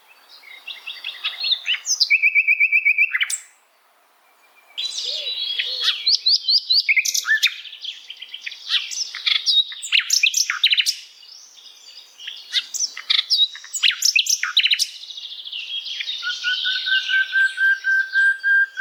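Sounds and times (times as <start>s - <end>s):
bird singing: 0.0s - 18.7s.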